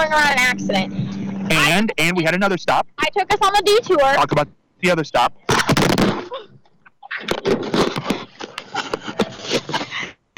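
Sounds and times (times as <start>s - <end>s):
speech: 0.0s - 6.5s, 7.2s - 8.1s
microphone dropped and clattering: 5.5s - 9.8s.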